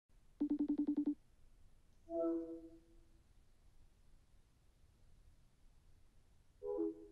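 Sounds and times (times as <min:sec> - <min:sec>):
FaceTime call pickup sound: 0:00.4 - 0:01.2.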